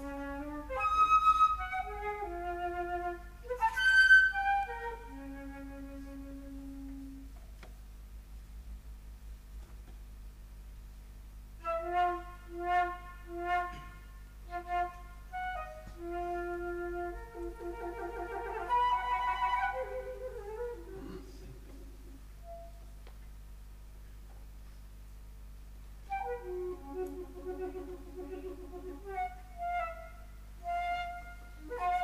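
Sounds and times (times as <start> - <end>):
flute: 0.0 - 7.4, 11.6 - 22.9, 26.0 - 32.0.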